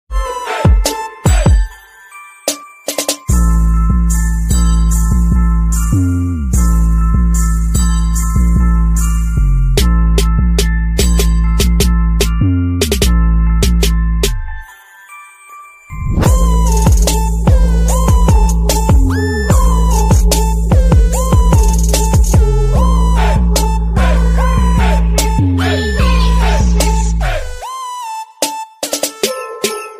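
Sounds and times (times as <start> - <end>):
ringtone background music: 0.1 - 29.9.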